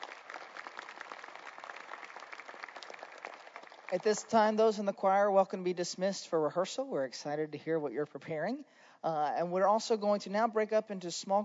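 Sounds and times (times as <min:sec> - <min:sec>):
audience applauding Dr. Westmoreland: 0:00.0 - 0:04.6
speech: 0:03.9 - 0:11.4.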